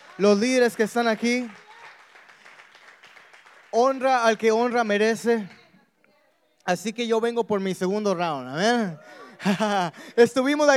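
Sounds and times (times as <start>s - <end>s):
audience applause: 0.0s - 4.8s
speech: 0.2s - 1.6s, 3.8s - 5.6s, 6.6s - 10.7s
laughter: 8.6s - 10.5s.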